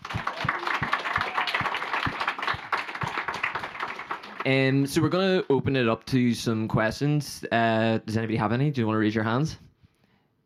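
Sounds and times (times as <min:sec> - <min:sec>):
audience applause: 0:00.0 - 0:05.1
speech: 0:04.4 - 0:09.6.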